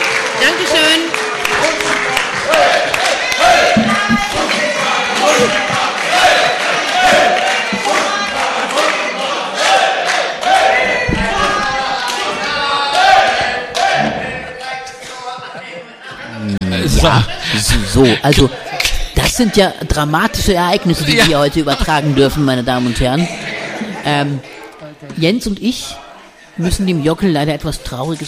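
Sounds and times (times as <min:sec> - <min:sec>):
audience applause: 0:00.0 - 0:14.0
speech: 0:00.4 - 0:02.7, 0:17.0 - 0:18.7, 0:19.4 - 0:23.4, 0:24.0 - 0:24.5, 0:25.2 - 0:26.0, 0:26.6 - 0:28.2
laughter: 0:14.9 - 0:19.2, 0:20.8 - 0:24.6.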